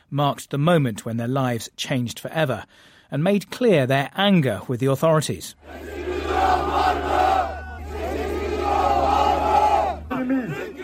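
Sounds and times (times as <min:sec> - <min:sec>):
speech: 0:00.1 - 0:07.1
angry crowd booing: 0:05.6 - 0:10.8.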